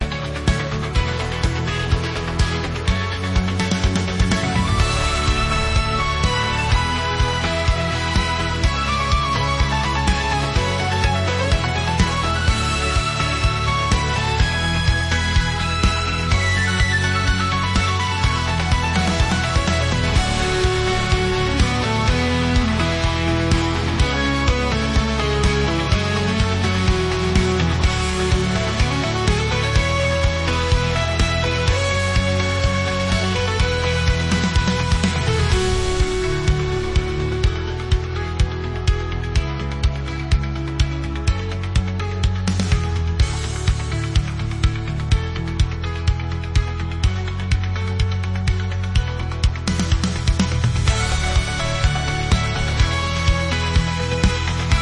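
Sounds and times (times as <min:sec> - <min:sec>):
pop rock music: 0:00.0 - 0:54.7.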